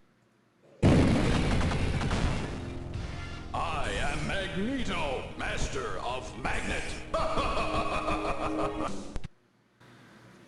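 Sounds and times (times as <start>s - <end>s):
X-Men arcade game explosion sound effects: 0.8s - 3.1s
speech: 4.4s - 9.1s
laughter: 7.1s - 9.2s.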